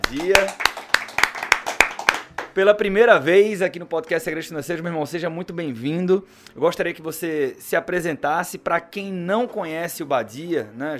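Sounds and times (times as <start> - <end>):
hand claps: 0.0 - 2.6
speech: 0.1 - 0.6, 2.6 - 10.9.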